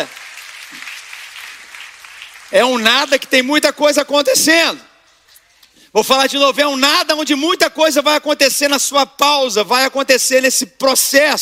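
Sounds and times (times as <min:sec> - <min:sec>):
audience applauding: 0:00.0 - 0:03.4
speech: 0:02.5 - 0:04.9, 0:05.9 - 0:11.3.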